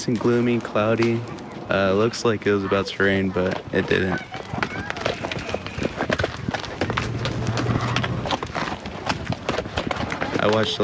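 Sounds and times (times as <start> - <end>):
speech: 0.0 - 4.7, 10.4 - 10.8
faint murmuring voices: 0.0 - 8.3
horse hooves clip-clopping at a walk: 0.0 - 10.8.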